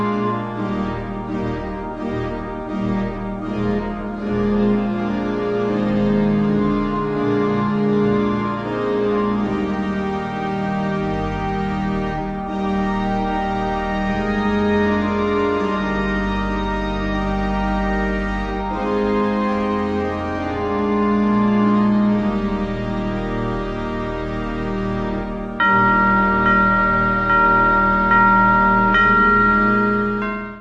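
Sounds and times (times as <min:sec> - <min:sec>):
cathedral organ playing: 0:00.0 - 0:30.5
chimes: 0:25.6 - 0:30.5.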